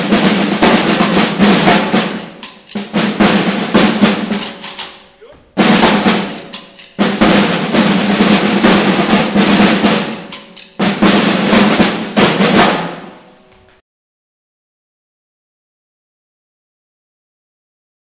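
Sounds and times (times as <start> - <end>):
percussion: 0.0 - 13.2.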